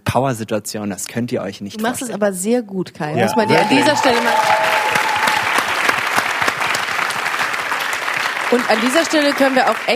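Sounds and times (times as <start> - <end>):
speech: 0.1 - 4.6, 8.5 - 9.9
audience applause: 3.2 - 9.9.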